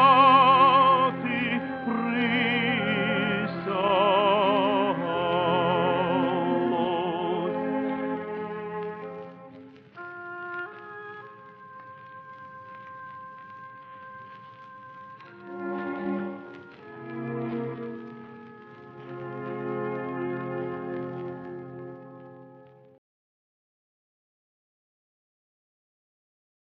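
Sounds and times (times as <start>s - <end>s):
Ukrainian tenor singing: 0.0s - 22.2s.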